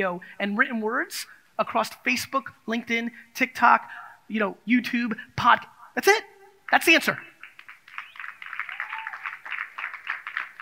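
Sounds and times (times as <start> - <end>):
speech: 0.0 - 7.3
scattered audience clapping: 6.7 - 10.6.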